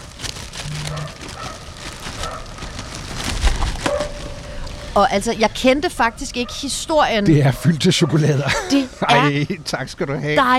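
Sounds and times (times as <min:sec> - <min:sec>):
rummaging in a plastic bag: 0:00.0 - 0:05.0
speech: 0:05.0 - 0:10.5
laughter: 0:08.0 - 0:09.5.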